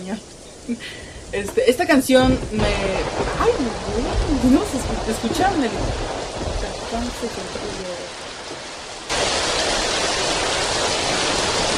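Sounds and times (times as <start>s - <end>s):
speech: 0.0s - 8.3s
rain falling: 0.0s - 11.7s.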